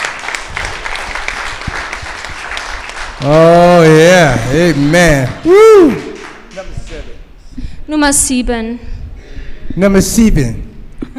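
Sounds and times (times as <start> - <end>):
round of applause for a pastor: 0.0 - 7.2
speech: 3.2 - 6.1, 7.9 - 8.9, 9.8 - 10.6.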